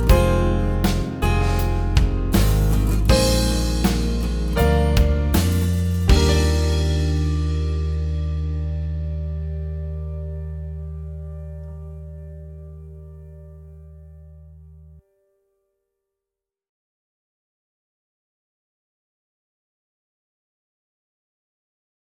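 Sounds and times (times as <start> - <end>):
instrumental music: 0.0 - 14.9.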